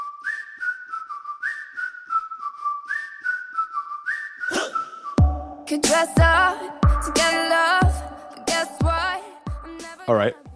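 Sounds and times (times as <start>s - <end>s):
whistled melody in a pop song: 0.0s - 10.1s
speech: 5.7s - 7.7s, 10.1s - 10.5s.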